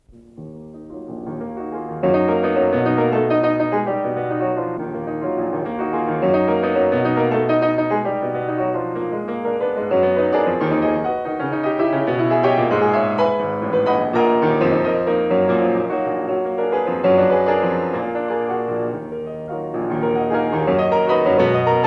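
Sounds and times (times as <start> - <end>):
piano prelude: 0.0 - 21.8.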